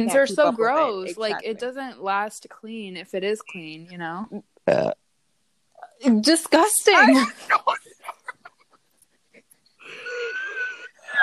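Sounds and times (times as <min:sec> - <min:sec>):
speech: 0:00.0 - 0:05.0, 0:06.0 - 0:07.9
frog-like burp: 0:04.6 - 0:05.0
laughter: 0:07.0 - 0:08.7, 0:09.9 - 0:11.0.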